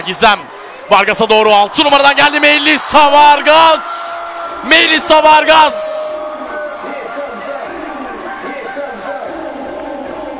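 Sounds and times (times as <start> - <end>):
speech: 0.0 - 4.0, 4.6 - 6.1
crowd shouting and cheering: 0.0 - 10.3.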